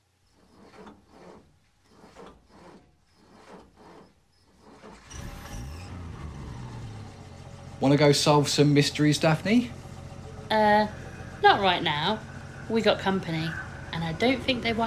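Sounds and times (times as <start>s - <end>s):
rhythmic rubbing or scraping: 0.0s - 5.1s, 7.2s - 14.8s
van engine starting and revving: 3.4s - 14.8s
speech: 7.8s - 9.8s, 11.6s - 14.8s.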